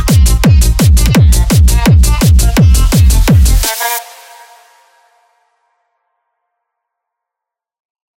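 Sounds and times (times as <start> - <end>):
bombarde: 0.0 - 5.2.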